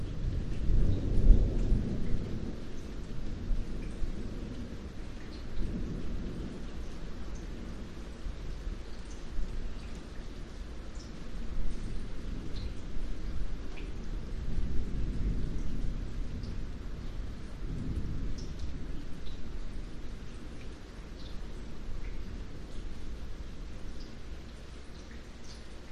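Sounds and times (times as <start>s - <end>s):
distant thunder rumbles: 0.0s - 8.9s, 14.0s - 21.4s
very light rain drips: 0.0s - 25.9s.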